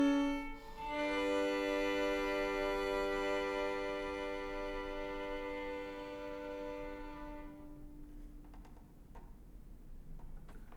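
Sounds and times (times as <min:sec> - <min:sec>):
two violins playing a duet: 0:00.0 - 0:08.1.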